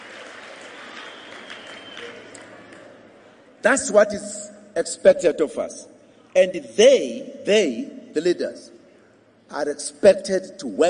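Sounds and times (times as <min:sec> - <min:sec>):
audience clapping: 0:00.0 - 0:03.0
speech: 0:03.6 - 0:08.8, 0:09.5 - 0:10.8.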